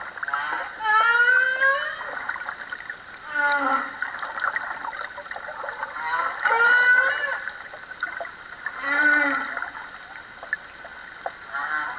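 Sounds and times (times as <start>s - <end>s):
humpback whale song: 0.0s - 11.9s.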